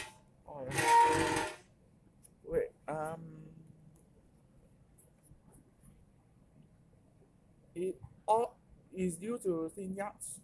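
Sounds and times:
chair being adjusted with rattling hissing mechanical noise: 0:00.7 - 0:01.6
speech: 0:07.8 - 0:10.4.

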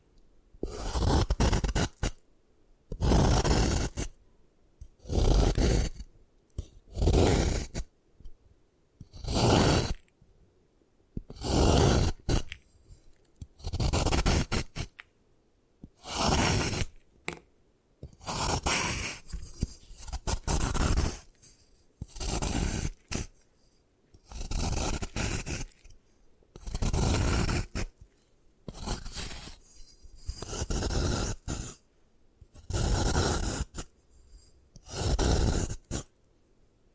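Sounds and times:
gym chalk being crushed and ground down: 0:00.6 - 0:02.2, 0:02.9 - 0:04.1, 0:05.0 - 0:07.9, 0:09.0 - 0:10.1, 0:11.2 - 0:15.1, 0:15.8 - 0:17.0, 0:18.0 - 0:26.0, 0:26.6 - 0:31.8, 0:32.5 - 0:36.1.

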